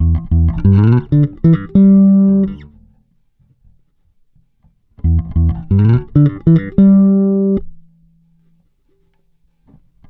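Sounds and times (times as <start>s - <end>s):
bass grooves: 0.0s - 2.7s, 5.0s - 7.6s.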